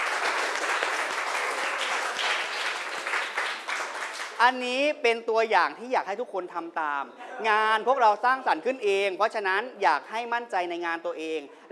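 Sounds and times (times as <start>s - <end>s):
audience applauding for a student presenter: 0.0s - 4.4s
speech: 4.4s - 11.6s.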